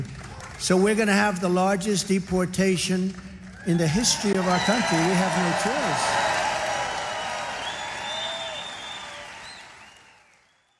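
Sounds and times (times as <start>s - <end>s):
speech: 0.0s - 6.4s
crowd cheering: 3.6s - 10.7s.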